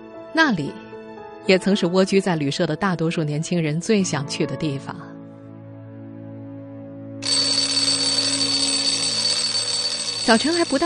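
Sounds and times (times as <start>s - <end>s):
speech: 0.4s - 0.8s, 1.4s - 5.1s, 10.3s - 10.8s
alarm clocks ringing: 7.2s - 10.8s.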